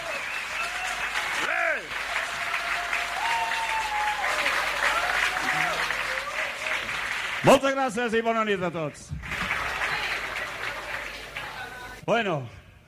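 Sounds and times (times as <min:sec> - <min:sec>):
audience applause: 0:00.0 - 0:07.8, 0:09.1 - 0:12.0
speech: 0:07.4 - 0:09.2, 0:12.0 - 0:12.6.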